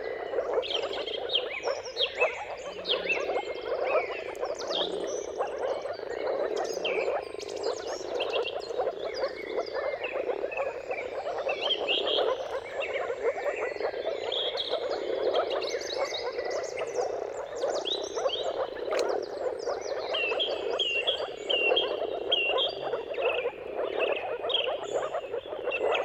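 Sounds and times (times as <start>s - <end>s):
moor frog chorus: 0.0s - 26.0s
songbirds singing: 0.0s - 26.0s.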